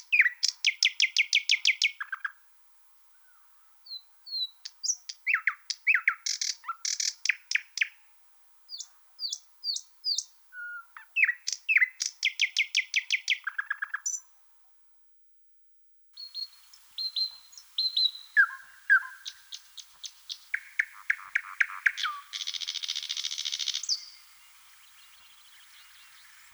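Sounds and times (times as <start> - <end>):
thrush nightingale song: 0.0 - 2.4, 3.0 - 14.4, 16.2 - 26.5.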